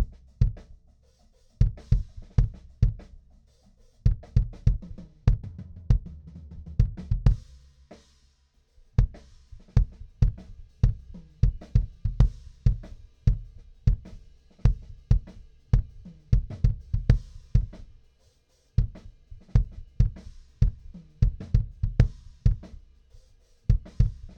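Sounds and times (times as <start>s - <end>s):
kick drum: 0.0s - 0.7s, 1.6s - 3.2s, 4.1s - 7.5s, 9.0s - 17.9s, 18.8s - 22.8s, 23.7s - 24.3s.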